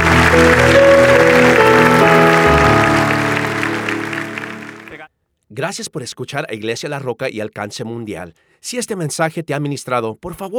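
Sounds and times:
church audience applause: 0.0 - 5.0
speech: 5.6 - 10.5.

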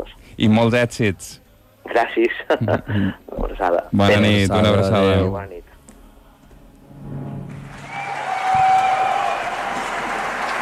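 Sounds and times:
speech: 0.0 - 5.7
group applause: 7.6 - 10.6.

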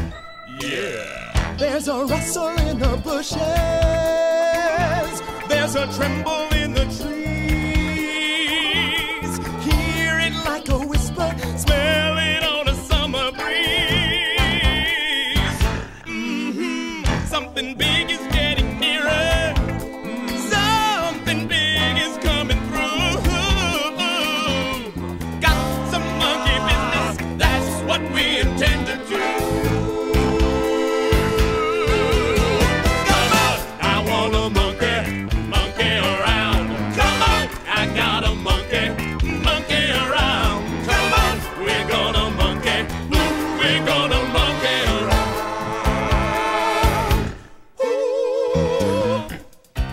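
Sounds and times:
guide vocals: 0.2 - 49.7.

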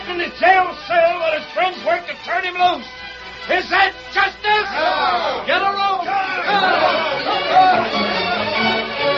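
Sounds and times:
speech: 0.2 - 8.0
angry mob shouting: 3.6 - 9.0.

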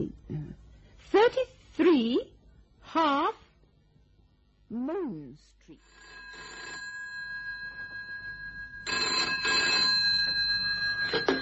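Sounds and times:
speech: 1.1 - 2.3, 2.9 - 3.4, 4.7 - 6.2
phone box telephone bell ringing: 5.8 - 11.4.

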